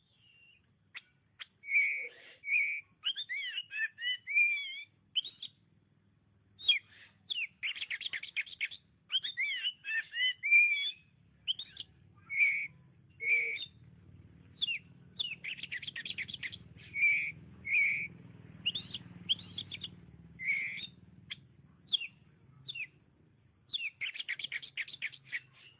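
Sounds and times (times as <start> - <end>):
Oriental magpie-robin song: 0.0 - 5.7, 6.4 - 25.7
low hum: 11.0 - 25.3.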